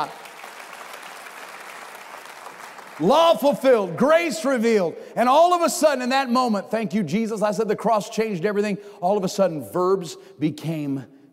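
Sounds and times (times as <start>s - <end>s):
speech: 0.0s - 0.2s, 3.0s - 11.2s
audience clapping hands: 0.0s - 4.2s.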